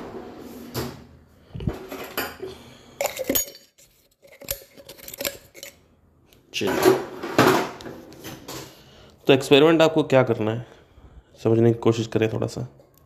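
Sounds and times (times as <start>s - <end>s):
spoon scraping coffee powder from the bottom of an emptied container: 3.0s - 5.8s
speech: 6.6s - 7.1s, 9.3s - 10.7s, 11.4s - 12.8s.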